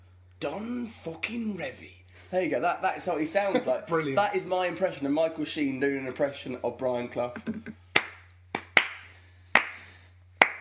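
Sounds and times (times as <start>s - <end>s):
speech: 0.4s - 7.8s
sarcastic slow hand claps: 7.9s - 10.5s.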